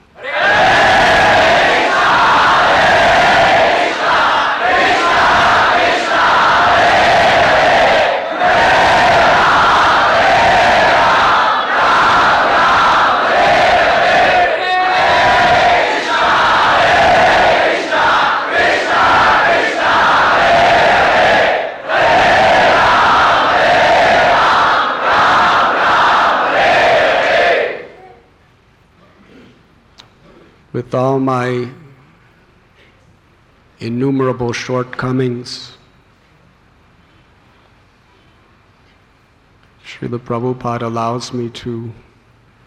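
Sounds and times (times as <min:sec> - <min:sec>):
large crowd chanting a mantra: 0:00.2 - 0:28.0
speech: 0:30.9 - 0:31.8, 0:33.8 - 0:35.8, 0:40.0 - 0:42.1.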